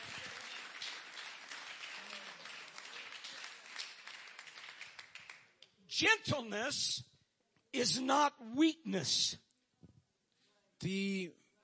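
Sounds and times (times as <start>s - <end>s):
audience clapping: 0.0s - 5.6s
speech: 6.0s - 7.1s, 7.7s - 9.4s, 10.8s - 11.4s.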